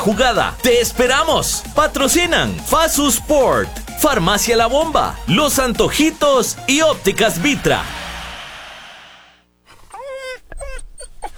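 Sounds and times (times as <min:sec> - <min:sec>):
speech: 0:00.0 - 0:08.0
hissy noise: 0:03.7 - 0:09.5
dog whimpering: 0:09.7 - 0:11.3.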